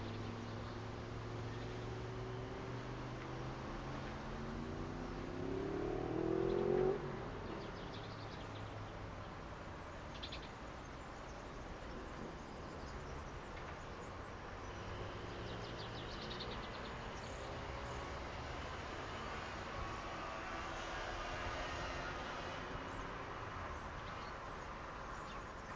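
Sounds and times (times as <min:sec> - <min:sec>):
vehicle accelerating past on the outskirts of Verona: 0:00.0 - 0:08.8, 0:14.6 - 0:23.8
traffic on the outskirts of Verona: 0:00.0 - 0:25.7.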